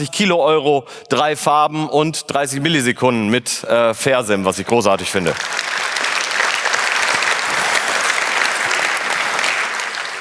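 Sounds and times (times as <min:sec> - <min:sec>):
speech: 0:00.0 - 0:05.8
audience clapping: 0:05.2 - 0:10.1.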